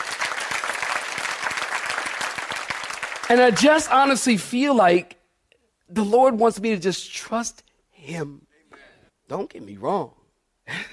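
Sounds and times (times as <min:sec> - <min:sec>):
audience clapping: 0:00.0 - 0:04.2
speech: 0:03.3 - 0:05.2, 0:05.9 - 0:08.5, 0:09.3 - 0:10.9.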